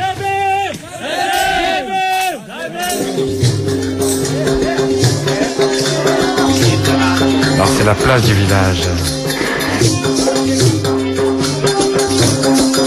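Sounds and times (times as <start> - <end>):
lively festival crowd cheering and calling out: 0.0 - 3.3, 4.2 - 10.6
festival music with steady tones and a rhythmic beat: 0.7 - 12.8
speech: 7.9 - 9.2, 9.8 - 10.1.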